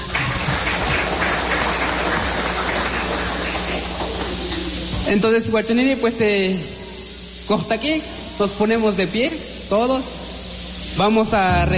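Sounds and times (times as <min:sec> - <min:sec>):
audience applauding: 0:00.0 - 0:05.0
speech: 0:05.1 - 0:06.8, 0:07.5 - 0:10.2, 0:10.9 - 0:11.7.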